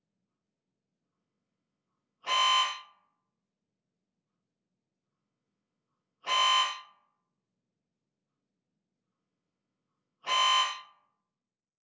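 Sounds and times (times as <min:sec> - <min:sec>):
Siemens 3T Magnetom Prisma Fit whole body MRI scanner running EPAD ASL scan: 0:02.3 - 0:03.0, 0:06.3 - 0:07.1, 0:10.3 - 0:11.1.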